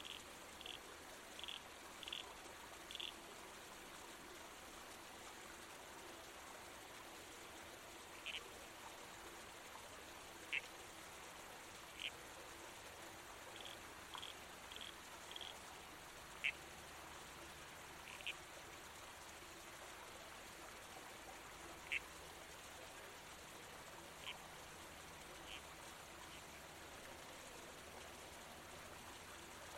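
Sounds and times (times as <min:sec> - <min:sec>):
red-crowned toadlet calls: 0:00.0 - 0:00.8, 0:01.4 - 0:02.3, 0:02.9 - 0:03.2, 0:08.2 - 0:08.4, 0:11.9 - 0:12.2, 0:13.5 - 0:15.6, 0:16.4 - 0:16.6, 0:18.0 - 0:18.4, 0:21.8 - 0:22.0, 0:24.2 - 0:24.4, 0:25.4 - 0:25.6
creek noise: 0:00.0 - 0:29.7.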